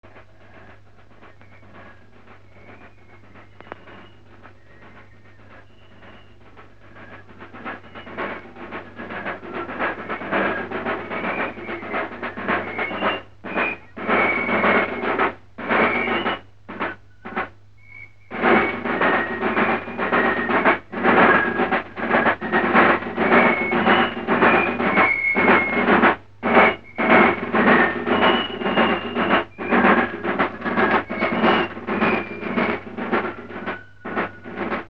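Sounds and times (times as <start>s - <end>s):
drums: 0.0s - 34.9s.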